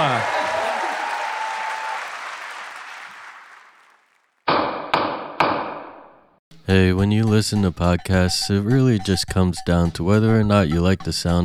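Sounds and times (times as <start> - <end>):
applause: 0.0 - 4.4
gavel strikes: 4.5 - 6.2
speech: 6.7 - 11.4.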